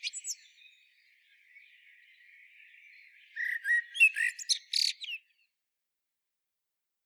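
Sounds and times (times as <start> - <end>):
Eurasian blackbird song: 0.0 - 5.6.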